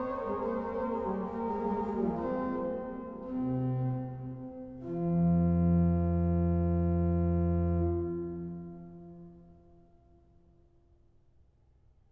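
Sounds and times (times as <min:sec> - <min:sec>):
organ playing concerto adagio: 0:00.0 - 0:08.7.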